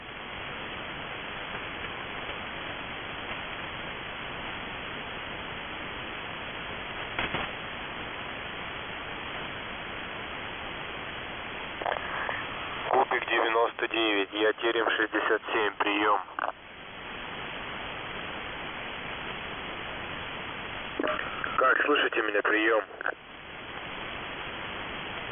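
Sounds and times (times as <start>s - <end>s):
radio receiver static hiss: 0.0s - 25.2s
crackling clicks: 7.1s - 7.6s, 16.3s - 16.6s.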